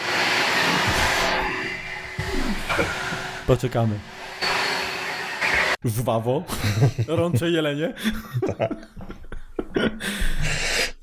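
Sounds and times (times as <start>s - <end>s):
vacuum cleaner running: 0.0s - 5.8s
speech: 2.8s - 4.1s, 5.8s - 8.9s
laughter: 6.5s - 10.3s.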